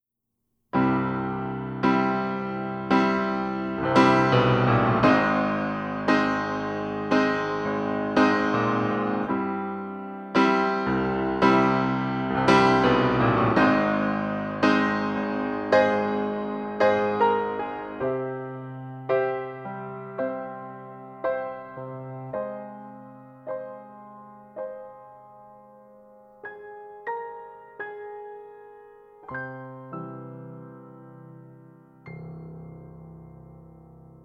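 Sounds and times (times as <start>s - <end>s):
piano: 0.7s - 34.2s.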